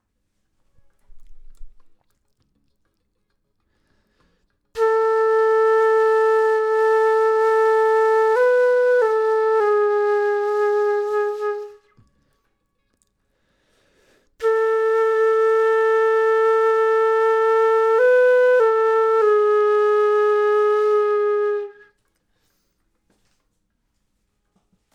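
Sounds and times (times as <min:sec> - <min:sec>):
flute: 0:04.8 - 0:12.2, 0:14.4 - 0:22.1.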